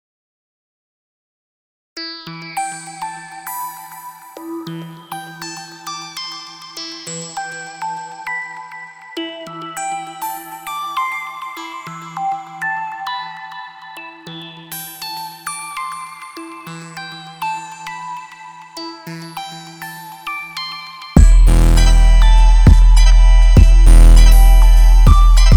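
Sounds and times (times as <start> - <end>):
hip hop instrumental: 21.2 - 25.5.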